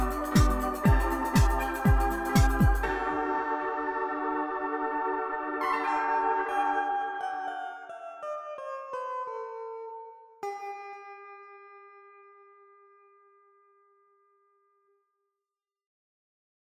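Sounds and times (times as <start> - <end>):
instrumental music: 0.0 - 13.2.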